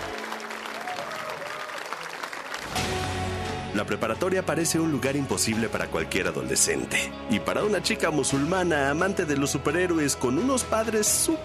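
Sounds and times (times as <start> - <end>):
audience applauding enthusiastically: 0.0 - 3.4
speech: 3.8 - 11.4.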